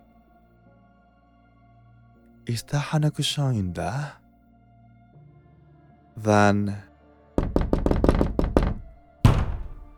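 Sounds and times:
speech: 0:02.5 - 0:04.2, 0:06.2 - 0:06.9
toilet stall door banged on from the inside: 0:07.4 - 0:09.9.

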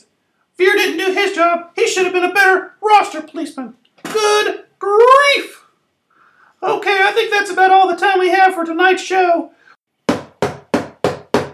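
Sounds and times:
speech: 0:00.6 - 0:05.6, 0:06.6 - 0:09.6
knocking on a door: 0:10.1 - 0:11.5.

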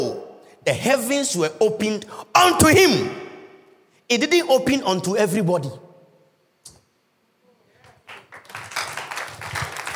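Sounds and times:
speech: 0:00.0 - 0:03.2, 0:04.1 - 0:05.8
crowd clapping: 0:07.8 - 0:09.9.

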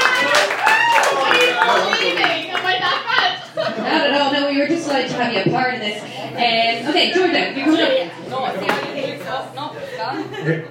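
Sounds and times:
live audience in Dublin applauding a guest: 0:00.0 - 0:03.3
voices and cheers: 0:00.0 - 0:03.5
laughter: 0:01.1 - 0:04.6, 0:07.7 - 0:10.7
speech: 0:04.6 - 0:10.7.

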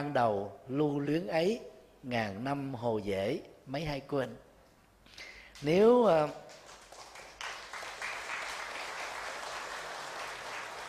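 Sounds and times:
speech: 0:00.0 - 0:04.4, 0:05.1 - 0:06.6
grooms in an audience clapping together: 0:05.5 - 0:10.8.

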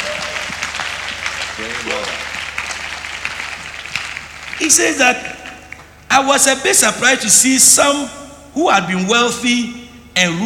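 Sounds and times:
audience clapping: 0:00.0 - 0:06.0
speech: 0:04.6 - 0:05.3, 0:06.2 - 0:10.4.

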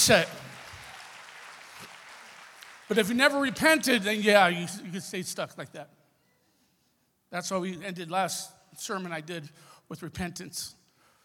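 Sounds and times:
speech: 0:00.0 - 0:00.4, 0:02.9 - 0:06.0, 0:07.3 - 0:10.8
audience clapping hands: 0:00.0 - 0:03.9.

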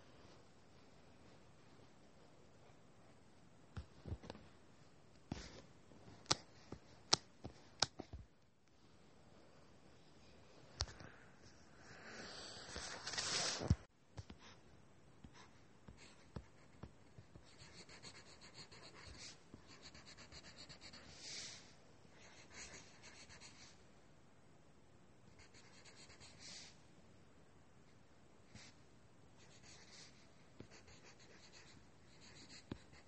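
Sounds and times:
quiet hiss: 0:00.0 - 0:33.0
pen or pencil drawing and writing: 0:17.4 - 0:21.2, 0:22.2 - 0:23.6, 0:29.4 - 0:33.0.

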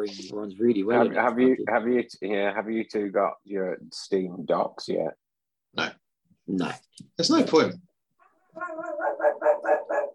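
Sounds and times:
speech: 0:00.0 - 0:07.9
dog barking outside: 0:08.2 - 0:10.1.

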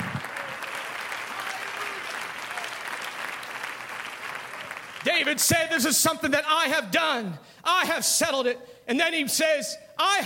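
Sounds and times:
audience clapping hands: 0:00.0 - 0:05.9
speech: 0:05.1 - 0:10.2.

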